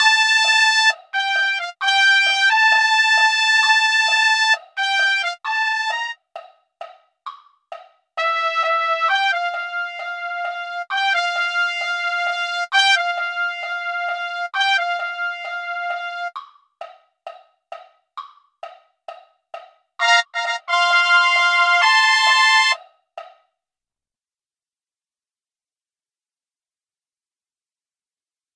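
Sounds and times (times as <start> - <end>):
trumpet: 0.0 - 6.2, 8.2 - 16.4, 20.0 - 22.8.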